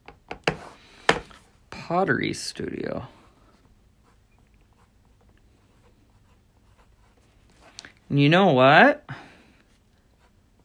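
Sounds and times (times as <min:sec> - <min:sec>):
speech: 0:01.9 - 0:03.2, 0:08.1 - 0:09.2
pen scratching on paper writing a note: 0:04.0 - 0:07.7.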